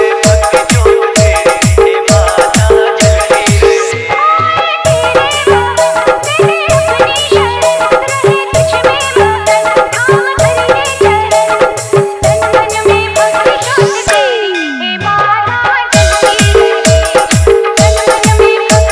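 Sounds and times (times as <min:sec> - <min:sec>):
DJ remix of a festival song: 0:00.0 - 0:04.1, 0:13.6 - 0:15.1, 0:16.0 - 0:18.9
hard dholki drumming: 0:00.0 - 0:18.9.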